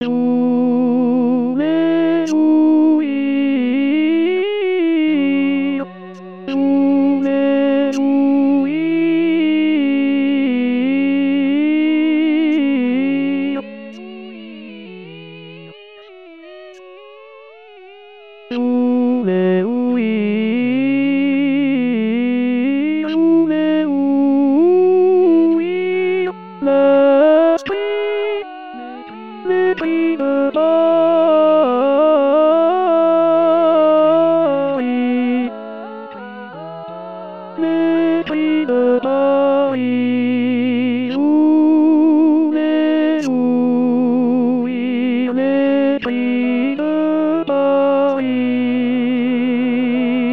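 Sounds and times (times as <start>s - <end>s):
tenor singing: 0.0s - 17.1s, 18.5s - 50.3s.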